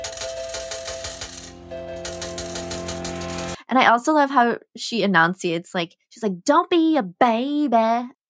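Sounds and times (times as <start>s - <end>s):
metallic coin-like clinks: 0.0s - 3.6s
slot machine chimes in a song intro: 0.0s - 3.6s
speech: 3.7s - 8.2s.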